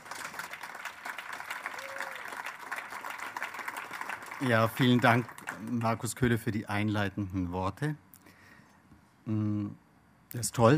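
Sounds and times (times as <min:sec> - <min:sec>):
audience applause: 0:00.0 - 0:06.0
speech: 0:04.4 - 0:08.0, 0:09.3 - 0:10.7.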